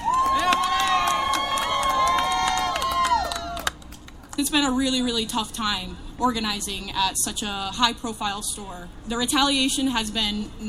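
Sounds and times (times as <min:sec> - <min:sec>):
crowd applause: 0:00.0 - 0:03.8
speech: 0:04.4 - 0:10.6.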